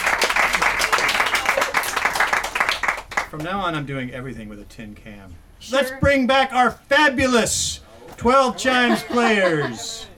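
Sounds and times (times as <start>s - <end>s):
crowd applauding: 0.0s - 3.4s
speech: 3.3s - 10.1s
laughter: 8.3s - 10.1s.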